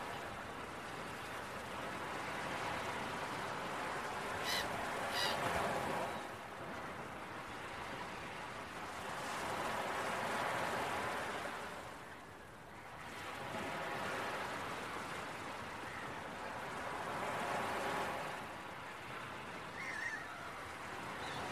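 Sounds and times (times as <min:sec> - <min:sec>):
breaking waves: 0:00.0 - 0:21.5
gull squawks: 0:04.4 - 0:05.4, 0:19.8 - 0:20.5.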